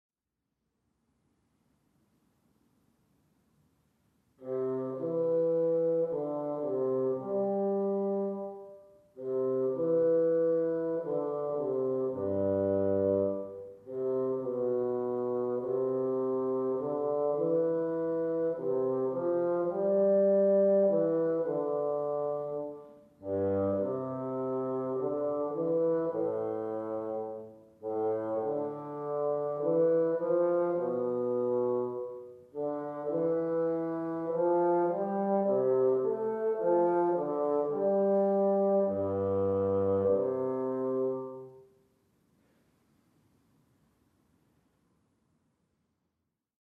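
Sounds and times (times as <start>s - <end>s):
bassoon playing studies: 4.4s - 41.7s.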